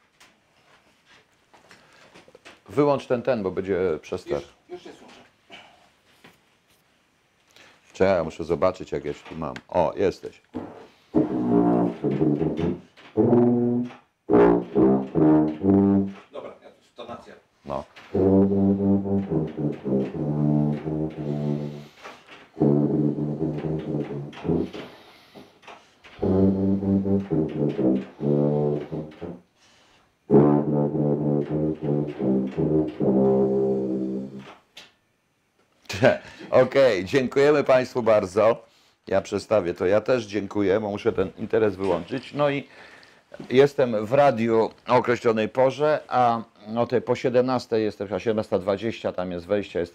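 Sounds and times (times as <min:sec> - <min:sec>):
speech: 0:02.8 - 0:05.0, 0:08.0 - 0:10.6, 0:12.0 - 0:13.6, 0:18.4 - 0:21.9, 0:37.1 - 0:49.9
tuba playing a self-composed tune: 0:10.6 - 0:16.4, 0:18.0 - 0:29.6, 0:30.2 - 0:34.6.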